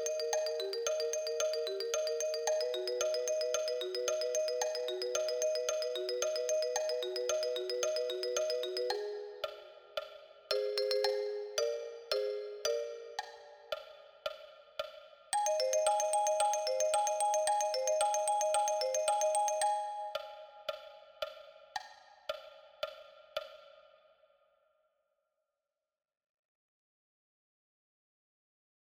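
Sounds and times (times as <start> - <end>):
marimba: 0.0 - 13.9, 15.4 - 20.9.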